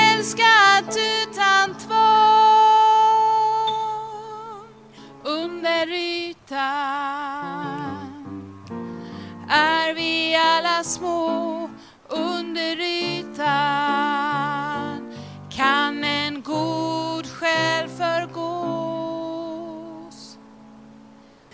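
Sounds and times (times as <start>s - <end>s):
soprano singing in vocal parts: 0.0s - 20.6s.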